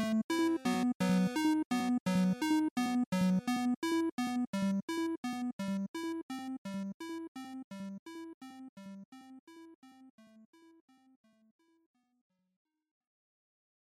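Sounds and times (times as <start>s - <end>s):
NES RPG dungeon game music: 0.0s - 10.0s.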